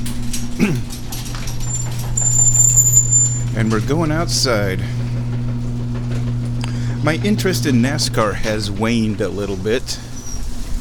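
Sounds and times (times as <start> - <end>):
garage door opening: 0.0 - 10.7
speech: 0.6 - 1.0, 3.6 - 5.0, 7.0 - 10.1
thin high-pitched whine: 1.6 - 4.8.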